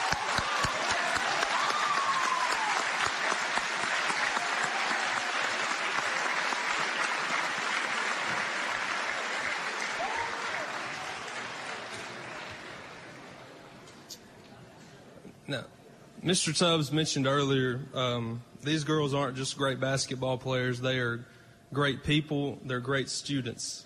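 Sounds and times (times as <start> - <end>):
audience applause: 0.0 - 13.6
speech: 15.5 - 23.8.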